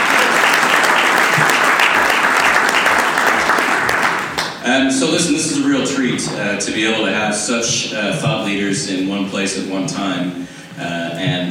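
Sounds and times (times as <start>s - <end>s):
live audience applause: 0.0s - 4.6s
speech: 4.7s - 11.5s.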